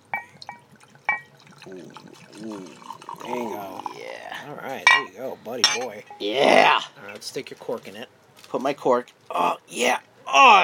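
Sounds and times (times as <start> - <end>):
bright glassy clinks: 0.0 - 1.3, 4.8 - 6.3
wine pouring into a glass: 0.0 - 4.1
speech: 1.7 - 10.6.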